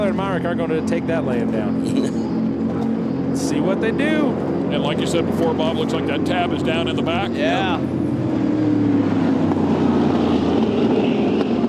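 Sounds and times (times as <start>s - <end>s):
racing boat engine roaring at high speed: 0.0s - 11.6s
speech: 0.1s - 2.2s, 3.3s - 8.0s.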